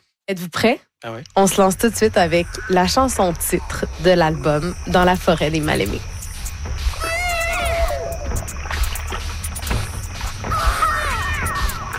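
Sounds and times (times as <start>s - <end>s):
speech: 0.3s - 6.1s
baby sound scratched on a 1970s sound effects vinyl: 7.0s - 11.9s.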